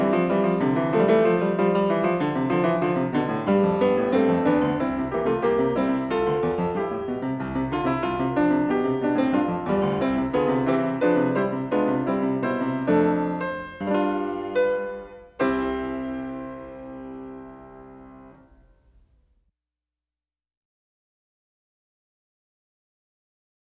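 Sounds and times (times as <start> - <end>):
fugue in C major: 0.0 - 18.5.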